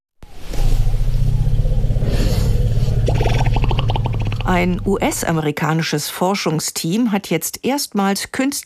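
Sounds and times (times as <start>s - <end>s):
wild African elephants greeting rumbles: 0.2s - 5.4s
speech: 4.5s - 8.6s.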